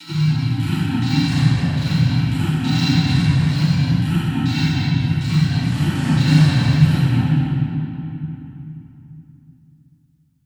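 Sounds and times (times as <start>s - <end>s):
well in a cave ambience: 0.0s - 8.2s.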